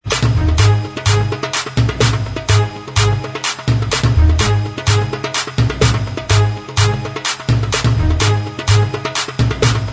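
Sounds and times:
instrumental music: 0.0s - 9.9s.

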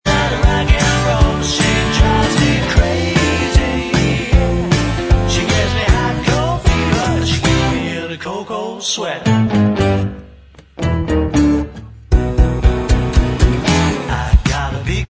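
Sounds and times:
backing vocals: 0.0s - 9.6s, 13.7s - 15.0s
backing track: 0.1s - 15.0s.

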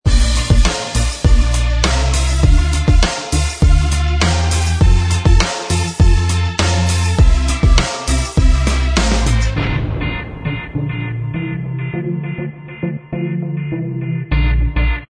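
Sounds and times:
instrumental music: 0.1s - 15.0s.

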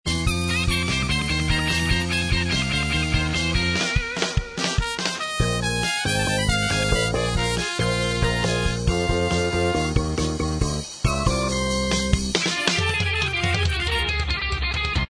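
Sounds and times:
instrumental music: 0.2s - 15.0s.

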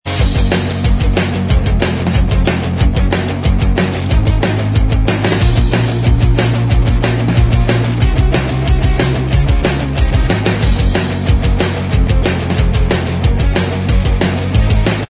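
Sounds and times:
punked-up instrumental track: 0.0s - 15.0s.

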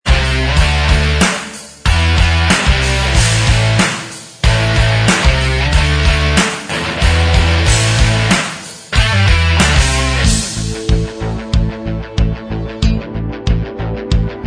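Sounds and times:
instrumental medley: 0.1s - 14.4s.

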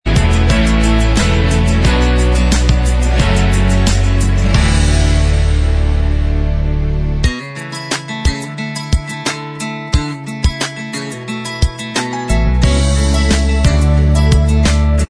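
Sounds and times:
instrumental backing track: 0.1s - 15.0s.

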